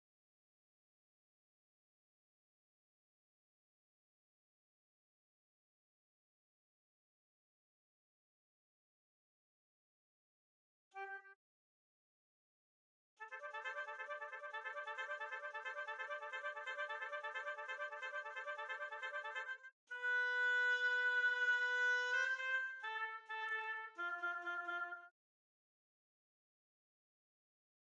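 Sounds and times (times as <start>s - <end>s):
oboe: 13.2s - 25.1s.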